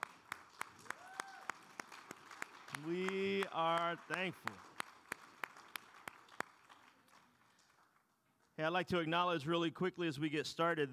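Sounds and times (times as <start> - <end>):
audience rhythmic clapping: 0.0 - 8.6
speech: 2.8 - 4.7, 8.6 - 10.9.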